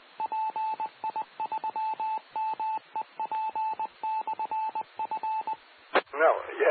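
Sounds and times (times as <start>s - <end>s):
automated repeater Morse code identification beeps over a radio channel: 0.2s - 5.6s.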